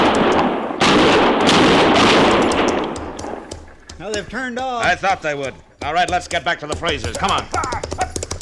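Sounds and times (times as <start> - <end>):
rifle shot fired as a warning: 0.0 - 3.8
speech: 4.0 - 8.2.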